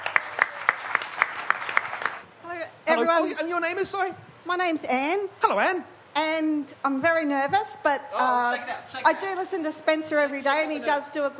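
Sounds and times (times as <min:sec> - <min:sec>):
audience applause: 0:00.0 - 0:02.3
crisp evenly spaced claps: 0:00.0 - 0:02.3
speech: 0:03.0 - 0:11.3.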